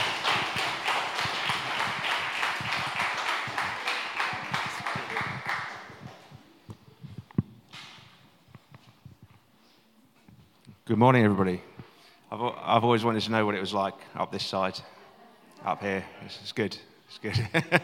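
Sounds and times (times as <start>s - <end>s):
crowd clapping: 0.0s - 6.4s
speech: 10.9s - 11.7s, 12.3s - 14.9s, 15.6s - 17.8s
laughter: 17.2s - 17.8s.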